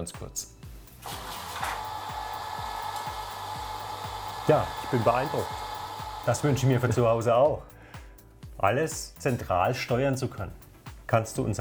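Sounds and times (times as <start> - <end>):
speech: 0.0 - 1.2, 4.5 - 5.7, 6.3 - 7.7, 8.6 - 11.5
motorized window blinds moving up and down: 0.9 - 7.3.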